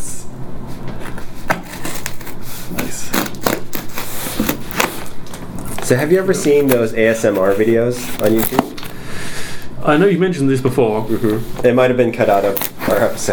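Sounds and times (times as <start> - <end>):
scissors cutting open taped parcel: 1.1 - 9.0, 11.0 - 13.3
speech: 5.9 - 8.6, 9.8 - 13.3.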